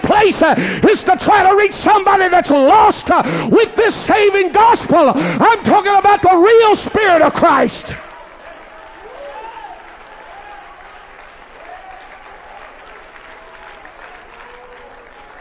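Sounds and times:
speech: 0.2 - 8.1
audience clapping hands: 7.0 - 15.3.

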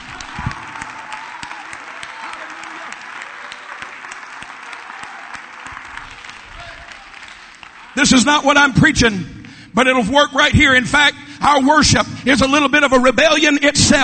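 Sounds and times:
audience clapping: 0.0 - 9.6
speech: 8.0 - 14.0.

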